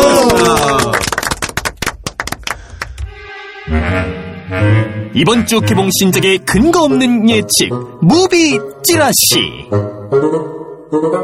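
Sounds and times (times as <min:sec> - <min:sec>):
applause: 0:00.0 - 0:03.0
speech: 0:05.2 - 0:11.2.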